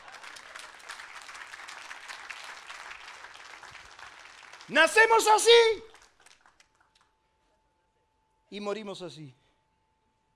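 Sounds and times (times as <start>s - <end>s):
audience applause: 0.0s - 6.9s
speech: 4.7s - 5.9s, 8.5s - 9.4s.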